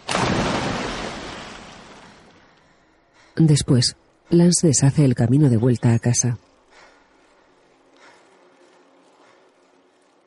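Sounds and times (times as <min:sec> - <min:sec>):
person plunging into a pool with a splash: 0:00.0 - 0:02.5
speech: 0:03.4 - 0:06.5.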